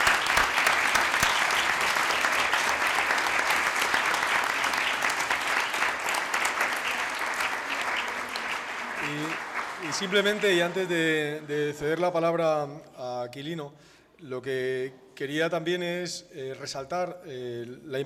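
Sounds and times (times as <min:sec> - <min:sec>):
audience applause: 0:00.0 - 0:11.8
speech: 0:10.0 - 0:18.0.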